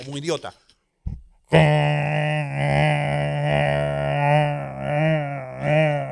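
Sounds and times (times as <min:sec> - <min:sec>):
voice imitating an airplane engine drone: 0:01.5 - 0:06.1.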